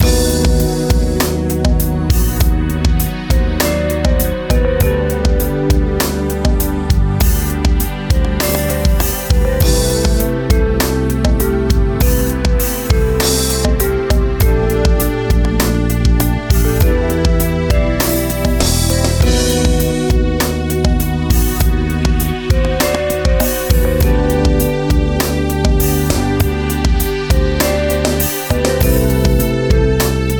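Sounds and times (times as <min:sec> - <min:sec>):
music loop: 0:00.0 - 0:30.3.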